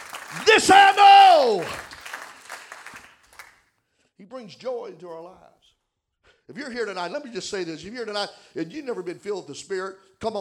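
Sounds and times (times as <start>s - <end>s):
audience clapping hands: 0.0s - 3.7s
speech: 0.3s - 1.9s, 4.2s - 5.6s, 6.5s - 10.3s.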